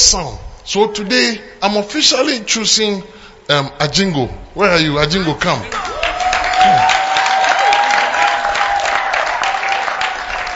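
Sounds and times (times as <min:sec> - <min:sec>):
speech: 0:00.1 - 0:05.8, 0:06.6 - 0:07.0
audience clapping: 0:05.6 - 0:10.5.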